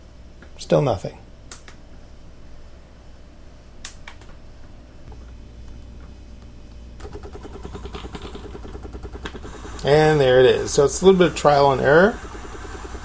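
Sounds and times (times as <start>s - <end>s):
speech: 0.6s - 1.2s, 9.8s - 12.3s
steam mop pushing out steam: 9.2s - 13.0s.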